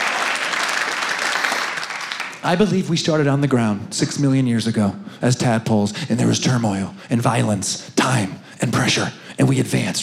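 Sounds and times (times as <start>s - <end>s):
audience clapping: 0.0s - 2.7s
speech: 2.4s - 10.0s.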